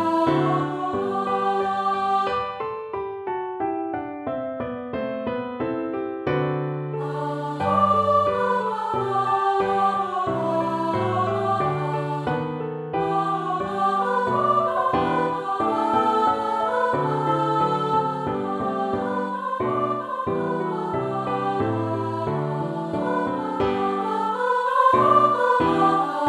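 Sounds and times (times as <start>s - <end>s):
solo voice singing in G major: 0.0s - 2.6s, 7.0s - 26.2s
piano in G major: 0.0s - 26.2s.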